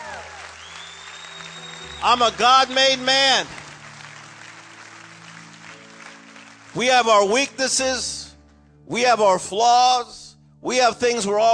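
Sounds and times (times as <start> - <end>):
audience clapping hands: 0.0 - 7.9
speech: 2.0 - 3.6, 6.8 - 8.2, 8.9 - 11.5.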